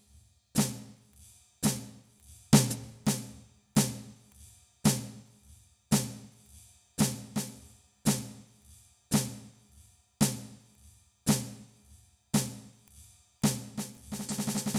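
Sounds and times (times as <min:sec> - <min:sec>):
snare drum: 0:00.6 - 0:01.0, 0:01.6 - 0:04.2, 0:04.8 - 0:05.3, 0:05.9 - 0:06.4, 0:07.0 - 0:08.5, 0:09.1 - 0:09.6, 0:10.2 - 0:10.7, 0:11.3 - 0:11.8, 0:12.4 - 0:12.8, 0:13.4 - 0:14.7.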